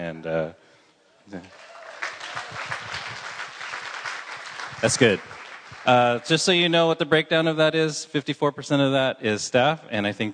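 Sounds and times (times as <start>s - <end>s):
speech: 0.1s - 0.6s, 1.3s - 1.7s, 4.8s - 10.3s
church congregation clapping in praise to God: 1.4s - 6.7s.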